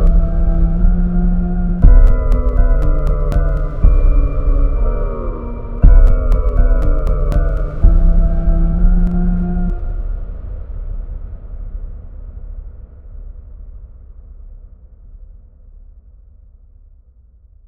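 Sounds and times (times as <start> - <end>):
1K tone: 0.0 - 10.1.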